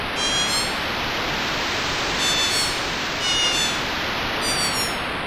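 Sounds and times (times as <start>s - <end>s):
seagulls calling: 0.2s - 0.8s, 2.1s - 5.0s.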